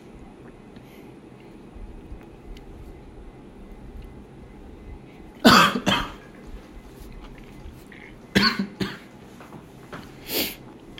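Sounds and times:
person coughing after drinking water: 5.4 - 6.3, 8.3 - 9.1.

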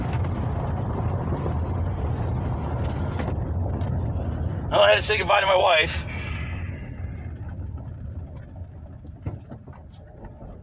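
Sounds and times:
car engine rumbling while driving on a road: 0.0 - 10.6
faint hiss of road noise: 2.0 - 7.7
speech: 4.7 - 6.3.

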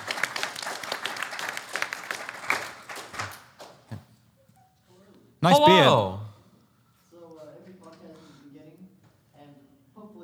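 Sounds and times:
audience clapping: 0.0 - 3.4, 5.4 - 6.3
speech: 5.4 - 6.2.

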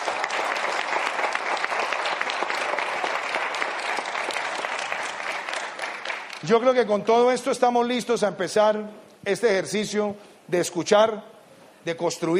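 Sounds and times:
audience applause: 0.0 - 6.6
speech: 6.4 - 12.3.

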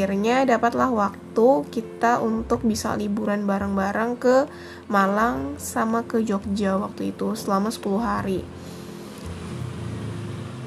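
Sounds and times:
speech: 0.0 - 8.7
broad road noise: 8.6 - 10.6
passing motorbike engine droning: 9.0 - 10.6.

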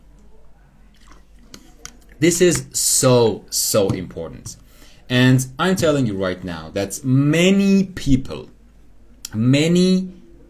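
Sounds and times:
person drinking water: 0.9 - 2.2
speech: 2.2 - 8.6, 9.3 - 10.4.

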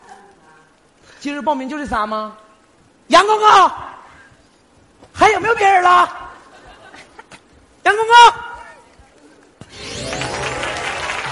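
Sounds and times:
speech: 1.2 - 2.4, 3.1 - 3.9, 5.2 - 6.2, 7.9 - 8.4
applause: 9.8 - 11.3.

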